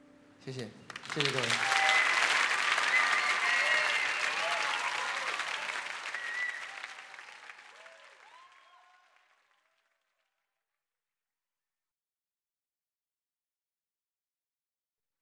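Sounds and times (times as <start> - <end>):
speech: 0.4 - 1.7
concert audience applause: 0.9 - 10.0.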